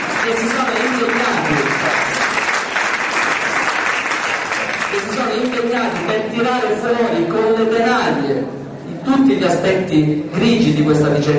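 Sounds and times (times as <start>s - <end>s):
audience applause honouring a journalist at a public gathering: 0.0s - 6.2s
speech: 0.2s - 2.1s, 5.0s - 11.3s.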